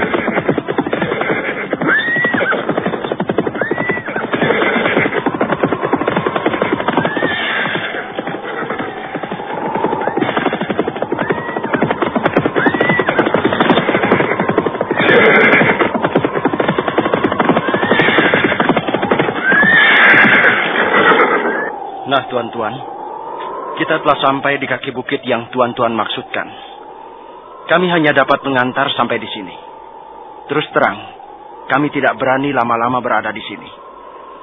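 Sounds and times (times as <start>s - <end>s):
hoofbeats of a riding party's horses arriving at the foot of Jaban hill: 0.0s - 21.8s
speech: 24.0s - 26.7s, 27.7s - 29.6s, 30.5s - 33.8s.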